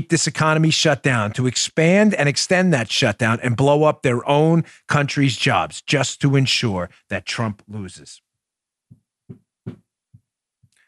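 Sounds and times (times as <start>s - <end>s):
speech: 0.0s - 8.2s
foot banging on the bottom of a desk: 9.3s - 9.8s.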